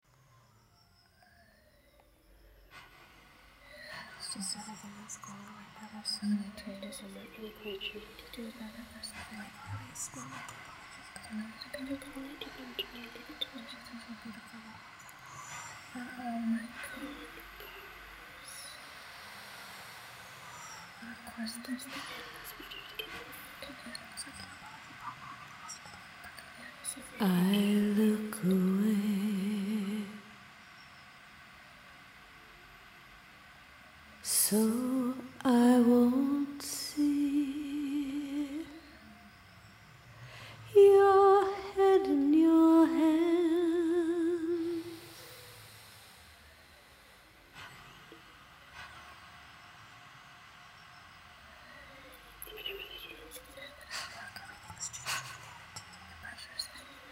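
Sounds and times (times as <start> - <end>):
vocals: 3.6 - 30.6, 34.1 - 46.1, 51.8 - 57.1.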